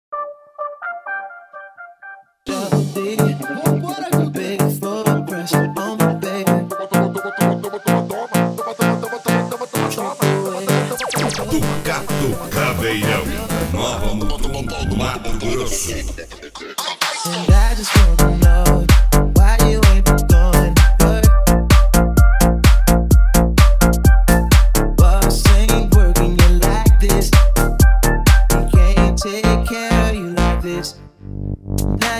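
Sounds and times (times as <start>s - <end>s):
mega funk music: 0.1s - 32.1s.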